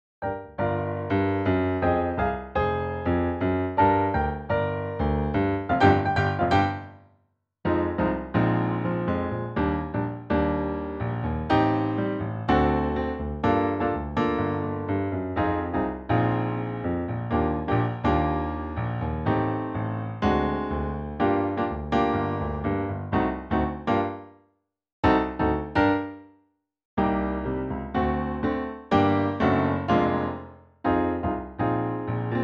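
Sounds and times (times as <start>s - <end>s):
piano: 0.0s - 32.4s.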